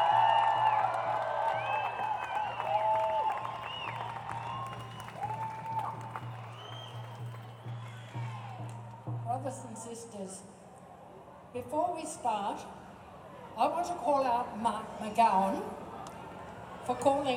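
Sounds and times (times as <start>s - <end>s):
rally crowd applause: 0.0s - 9.0s
speech: 9.5s - 10.6s, 11.6s - 12.8s, 13.6s - 15.8s, 16.9s - 17.3s.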